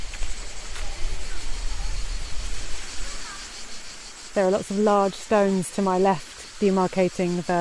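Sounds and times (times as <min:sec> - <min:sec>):
waterfall: 0:00.0 - 0:07.5
speech: 0:04.4 - 0:07.5.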